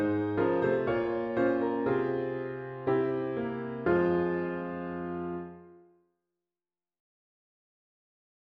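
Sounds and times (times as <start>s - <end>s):
solo piano: 0.0s - 6.0s.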